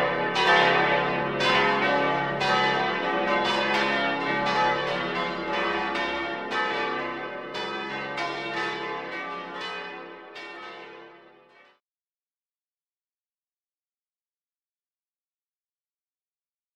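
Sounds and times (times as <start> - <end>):
church bells of St Peter und Paul ringing in Leuggern: 0.0 - 11.8.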